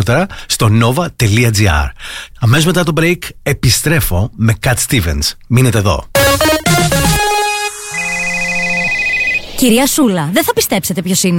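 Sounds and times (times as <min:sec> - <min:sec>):
speech: 0:00.0 - 0:06.7, 0:09.6 - 0:11.3
electronic phone ringtone in a Greek radio advert: 0:06.2 - 0:09.6.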